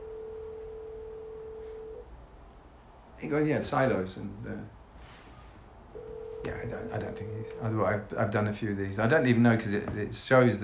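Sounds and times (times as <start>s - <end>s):
ringback tone from an outgoing phone call: 0.0s - 2.0s, 6.0s - 7.6s
low hum: 0.0s - 10.6s
speech: 3.2s - 4.8s, 6.4s - 10.6s.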